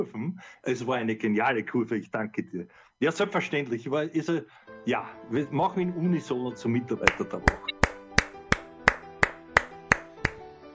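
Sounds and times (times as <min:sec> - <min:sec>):
speech: 0:00.0 - 0:07.8
sharp hand claps: 0:07.0 - 0:10.4.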